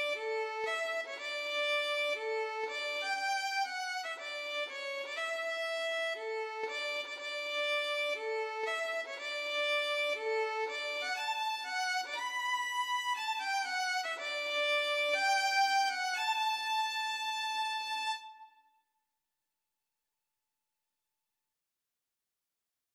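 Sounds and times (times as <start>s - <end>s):
violin and guitar duet: 0.0s - 18.3s.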